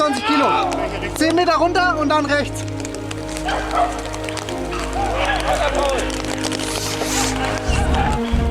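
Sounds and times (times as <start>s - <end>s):
people calling out: 0.0s - 1.2s, 3.4s - 8.4s
speech: 1.4s - 2.7s, 3.5s - 4.1s
hunting dogs barking and yelping: 3.3s - 8.4s.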